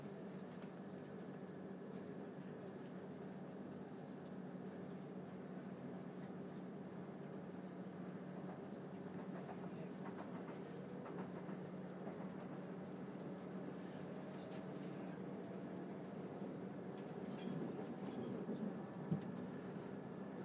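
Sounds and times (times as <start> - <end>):
train interior ambience: 0.0 - 20.4.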